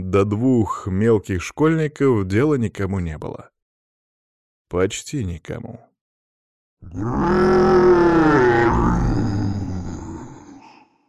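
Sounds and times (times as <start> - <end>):
speech: 0.1 - 3.5, 4.7 - 5.9, 6.8 - 9.4
long low howl of a forest creature: 6.9 - 10.5.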